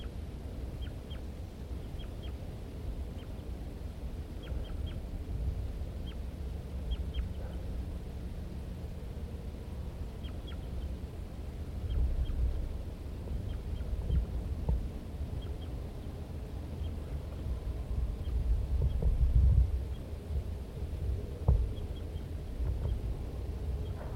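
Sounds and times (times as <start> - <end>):
male and female birds calling near their nest in a pitch pine area: 0.0 - 2.4, 4.3 - 5.1, 6.0 - 7.8, 10.0 - 19.2, 21.1 - 24.1
steady low noise: 0.0 - 24.1.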